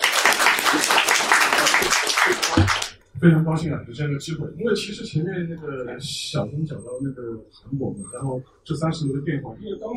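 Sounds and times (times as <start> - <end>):
audience applause: 0.0 - 2.9
speech: 3.2 - 9.9.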